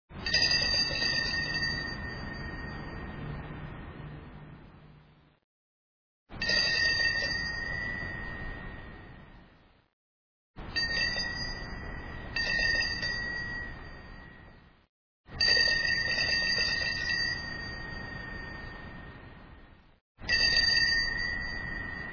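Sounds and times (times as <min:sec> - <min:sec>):
bells ringing: 0:00.2 - 0:03.8, 0:06.4 - 0:09.5, 0:10.6 - 0:14.7, 0:15.4 - 0:19.6, 0:20.2 - 0:22.1.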